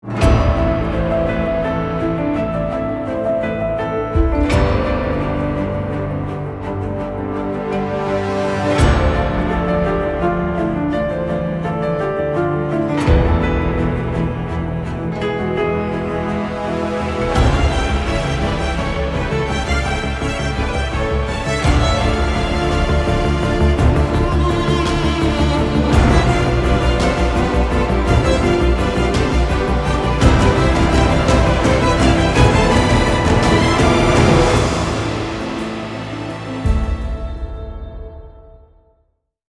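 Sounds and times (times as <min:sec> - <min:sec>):
piano: 0:00.0 - 0:39.0.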